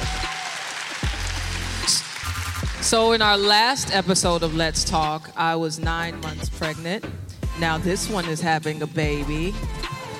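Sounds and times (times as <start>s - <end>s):
live audience clapping: 0.0s - 3.5s
speech: 2.8s - 9.8s.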